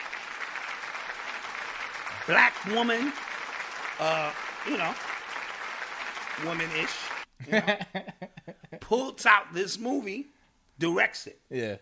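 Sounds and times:
audience clapping: 0.0s - 7.3s
speech: 2.3s - 3.3s, 4.0s - 5.1s, 6.4s - 11.8s
laughter: 7.4s - 8.8s.

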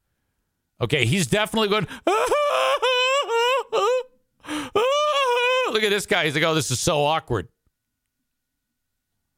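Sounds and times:
speech: 0.8s - 2.8s, 5.8s - 7.6s
college football player sobbing uncontrollably: 1.6s - 6.4s
laughter: 2.1s - 4.0s.

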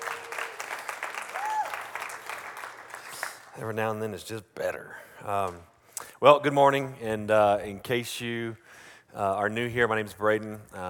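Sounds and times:
audience applause: 0.0s - 3.6s
speech: 3.6s - 10.8s.

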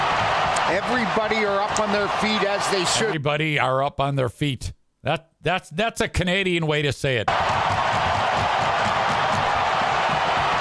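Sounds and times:
stadium crowd cheering on their feet: 0.0s - 3.2s, 7.3s - 10.5s
speech: 0.7s - 7.5s.

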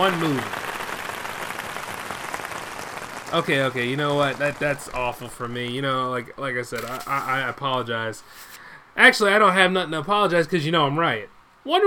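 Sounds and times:
speech: 0.0s - 0.6s, 3.3s - 11.8s
crowd applause sound effect: 0.0s - 5.6s.

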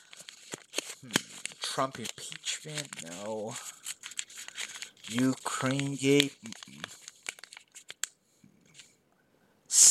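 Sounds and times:
flipping through paper pages: 0.0s - 8.1s
speech: 1.0s - 1.2s, 1.8s - 3.8s, 5.1s - 7.0s.

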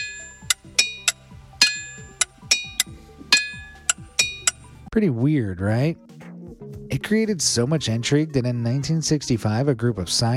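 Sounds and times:
hammer striking rock with bell-like ring: 0.0s - 4.7s
speech: 4.9s - 6.1s, 7.0s - 10.3s.

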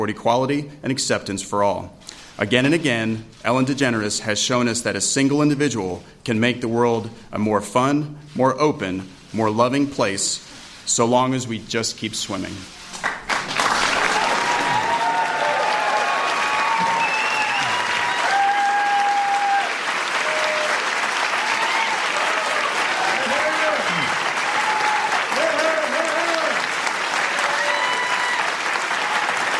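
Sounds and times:
speech: 0.0s - 13.1s
audience applause: 13.0s - 29.5s
audience cheering and whooping: 13.8s - 29.5s.

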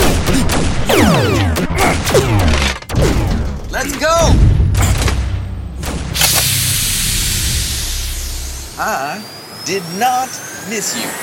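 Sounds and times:
gunshots in a dense continuous barrage: 0.0s - 6.7s
sweeping descending whistle-like tones: 7.9s - 11.2s
speech: 9.7s - 11.2s.

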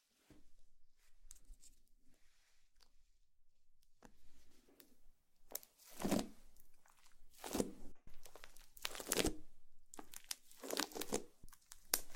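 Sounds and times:
slime being squished and pulled: 5.5s - 12.1s.

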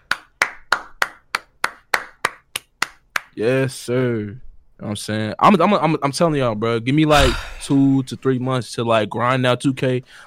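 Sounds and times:
hand claps: 0.0s - 3.4s
speech: 3.4s - 10.2s.

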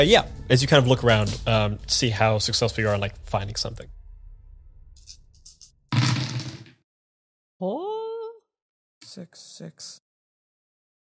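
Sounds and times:
speech: 0.0s - 4.0s, 9.2s - 10.0s
dice pool being rolled: 5.5s - 6.8s.

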